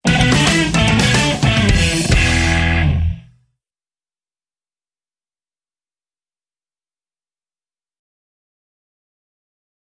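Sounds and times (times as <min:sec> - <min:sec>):
rock music: 0:00.0 - 0:03.4.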